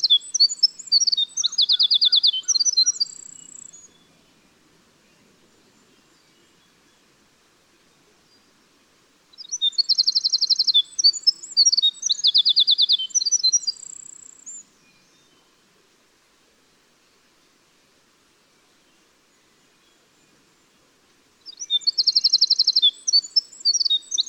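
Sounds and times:
winter wren: 0.0 - 4.1, 9.3 - 15.4, 21.4 - 24.2.

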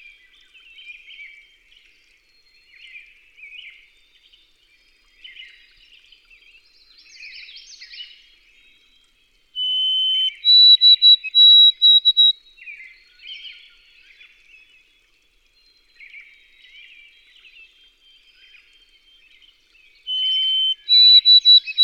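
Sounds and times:
White-throated sparrow whistled song: 9.6 - 12.4, 20.0 - 21.8.

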